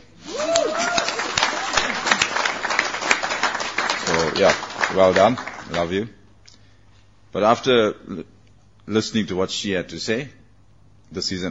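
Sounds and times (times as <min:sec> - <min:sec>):
round of applause: 0:00.2 - 0:05.9
speech: 0:04.4 - 0:06.2, 0:07.3 - 0:10.4, 0:11.1 - 0:11.4.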